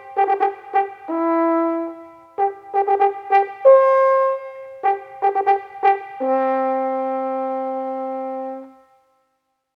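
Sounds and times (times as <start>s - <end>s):
calling horn call on French horn: 0.0s - 8.9s.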